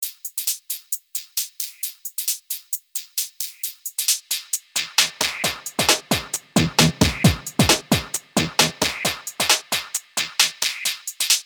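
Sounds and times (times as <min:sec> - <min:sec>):
high-pass filtered loop: 0:05.0 - 0:10.0.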